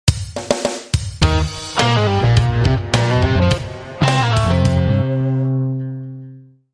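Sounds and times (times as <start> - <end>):
groovy music: 0.1 - 6.6.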